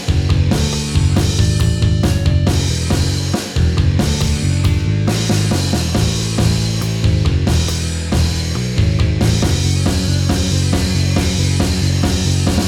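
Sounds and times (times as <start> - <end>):
bass drum line: 0.0 - 12.6.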